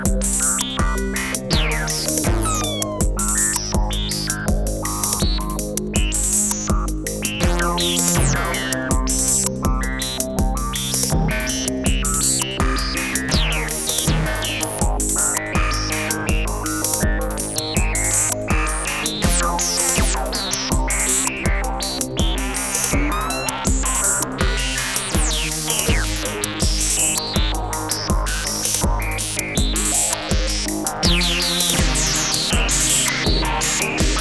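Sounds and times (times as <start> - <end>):
Analog Rytm drum machine with SH filter: 0.0 - 34.2.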